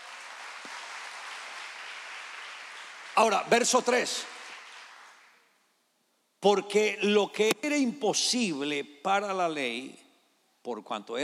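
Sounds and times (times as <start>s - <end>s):
audience applause: 0.0s - 5.4s
speech: 3.2s - 4.4s, 6.4s - 10.0s, 10.6s - 11.2s.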